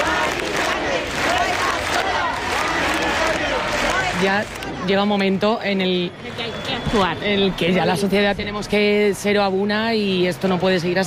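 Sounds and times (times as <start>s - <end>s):
protest crowd shouting and chanting: 0.0s - 11.0s
speech: 4.2s - 11.0s.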